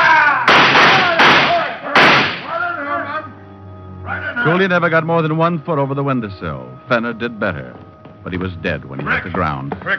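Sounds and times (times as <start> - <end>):
voices shouting: 0.0 - 3.4
gunfire in a radio drama shootout at a window: 0.5 - 2.5
speech: 4.5 - 9.9.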